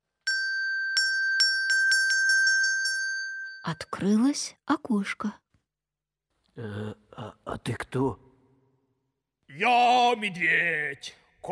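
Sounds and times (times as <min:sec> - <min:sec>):
small bell ringing: 0:00.0 - 0:04.1
speech: 0:03.6 - 0:05.4, 0:06.6 - 0:08.2, 0:09.5 - 0:11.4.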